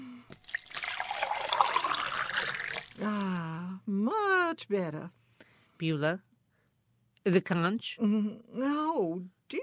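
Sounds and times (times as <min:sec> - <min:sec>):
drink poured into a glass: 0:00.3 - 0:03.0
speech: 0:03.0 - 0:03.5, 0:04.6 - 0:05.2, 0:05.8 - 0:06.3, 0:07.3 - 0:09.6.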